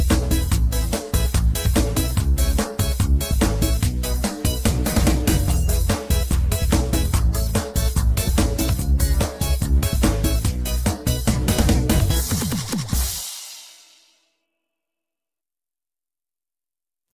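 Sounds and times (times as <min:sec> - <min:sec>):
backing track: 0:00.0 - 0:13.4.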